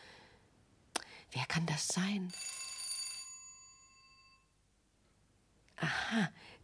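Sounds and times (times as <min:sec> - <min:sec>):
speech: 0:01.3 - 0:02.4, 0:05.9 - 0:06.6
doorbell ringing: 0:02.3 - 0:04.5.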